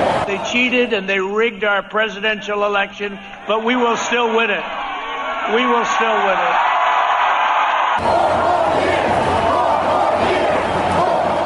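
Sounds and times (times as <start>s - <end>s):
rally crowd cheering: 0.0s - 1.0s, 3.4s - 11.4s
speech: 0.4s - 4.8s, 5.5s - 6.6s, 8.0s - 8.5s.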